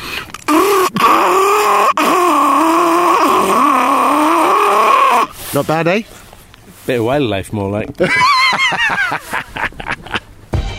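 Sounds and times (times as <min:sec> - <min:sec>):
person vocally imitating a carbureted rally car engine: 0:00.5 - 0:05.3
speech: 0:05.5 - 0:06.2, 0:06.9 - 0:09.6
laughter: 0:08.0 - 0:10.3.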